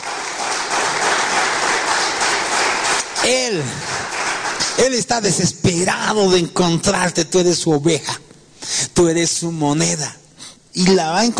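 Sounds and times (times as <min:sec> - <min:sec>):
audience applauding: 0:00.0 - 0:05.2
speech: 0:03.2 - 0:04.0, 0:04.8 - 0:08.3, 0:09.0 - 0:10.2, 0:10.8 - 0:11.3.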